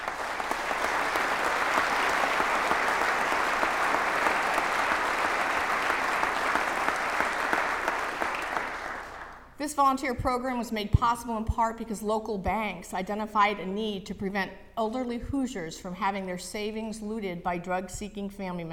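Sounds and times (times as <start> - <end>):
audience applause: 0.0 - 9.4
speech: 9.6 - 18.7.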